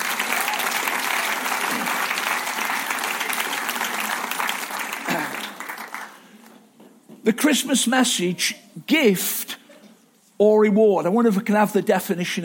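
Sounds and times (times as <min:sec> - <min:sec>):
audience applause: 0:00.0 - 0:06.4
speech: 0:07.3 - 0:09.6, 0:10.4 - 0:12.4.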